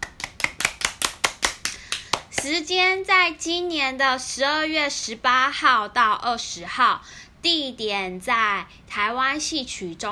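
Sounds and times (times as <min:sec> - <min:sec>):
hand clapping: 0:00.0 - 0:02.6
speech: 0:02.4 - 0:10.1.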